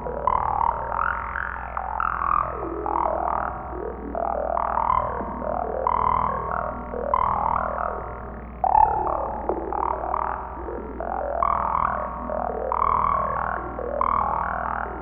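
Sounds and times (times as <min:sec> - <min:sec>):
frogs: 0:00.0 - 0:15.0.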